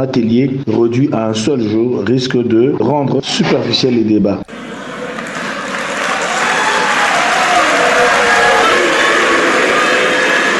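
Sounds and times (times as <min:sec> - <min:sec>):
speech: 0:00.0 - 0:04.7
political activists applauding at a meeting: 0:04.5 - 0:10.5.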